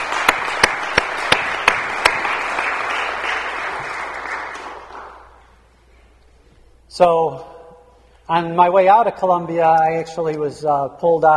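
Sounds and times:
crowd applause: 0.0s - 5.4s
speech: 7.0s - 7.5s, 8.3s - 11.3s.

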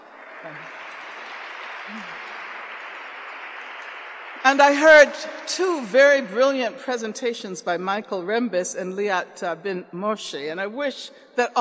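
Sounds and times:
audience applause: 0.0s - 5.9s
speech: 0.4s - 0.9s, 1.9s - 2.4s, 4.4s - 11.5s.

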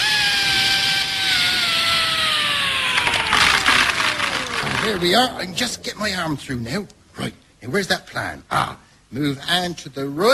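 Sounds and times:
power drill boring through wood: 0.0s - 5.4s
speech: 4.9s - 10.3s.

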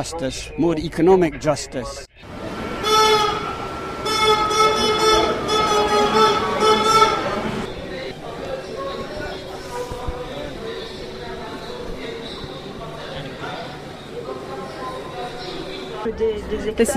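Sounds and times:
speech: 0.0s - 2.3s, 16.2s - 16.9s
tonal sounds: 2.2s - 8.1s
passenger train carriage rolling through Belgium near Liège: 2.2s - 16.0s.

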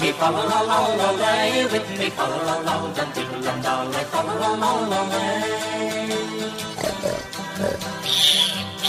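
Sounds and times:
speech: 0.1s - 8.7s
pig grunting: 6.7s - 8.8s.

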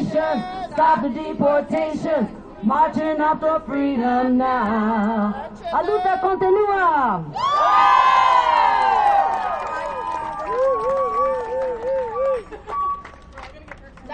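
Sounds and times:
speech: 0.1s - 8.0s
crowd cheering at a rally protesting deportations: 7.3s - 13.0s.

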